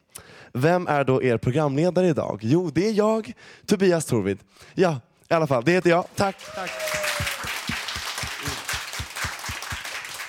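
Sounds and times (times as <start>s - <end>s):
speech: 0.5s - 7.4s
spontaneous audience applause: 6.1s - 10.2s.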